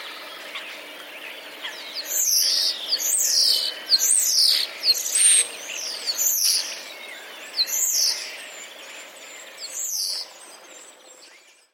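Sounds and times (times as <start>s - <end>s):
starlings yapping and mimicking jackdaws and jays: 0.0s - 10.9s.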